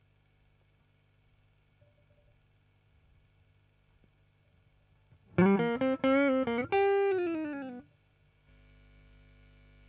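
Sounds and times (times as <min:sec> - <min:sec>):
guitar: 0:05.1 - 0:07.9.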